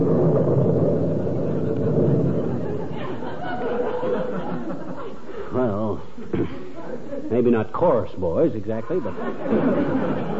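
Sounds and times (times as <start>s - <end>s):
thunder crash rumbling: 0.0s - 5.0s
laughter: 2.4s - 7.6s, 8.7s - 10.3s
speech: 7.4s - 10.3s.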